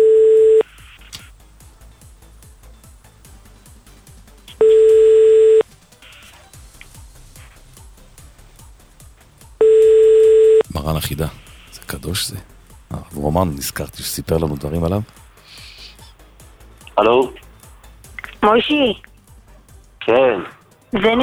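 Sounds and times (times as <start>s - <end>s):
telephone ringback tone on phone line: 0.0s - 0.6s, 4.6s - 5.6s, 9.6s - 10.7s
speech: 11.0s - 15.2s, 18.6s - 19.1s, 20.1s - 21.2s.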